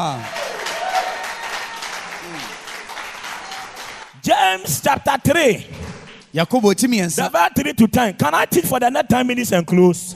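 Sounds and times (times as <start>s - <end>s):
speech: 0.0s - 0.4s, 4.2s - 10.1s
audience clapping: 0.0s - 4.8s, 5.8s - 7.1s.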